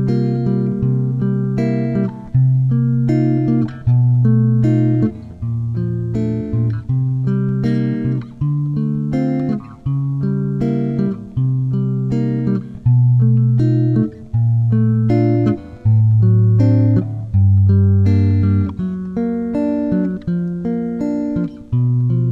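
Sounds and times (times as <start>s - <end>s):
fingerstyle guitar composition: 0.0s - 22.2s.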